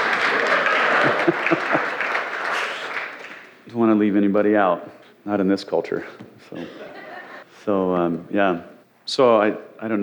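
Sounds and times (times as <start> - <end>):
laughter: 0.0 - 2.8, 6.5 - 7.4
audience applause: 0.0 - 3.6
speech: 3.8 - 7.0, 7.6 - 10.0.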